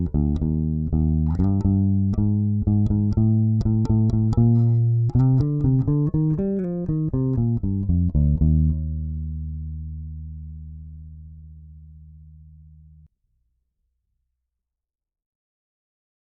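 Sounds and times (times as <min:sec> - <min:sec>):
Spector guitar on both pickups: 0:00.0 - 0:10.2.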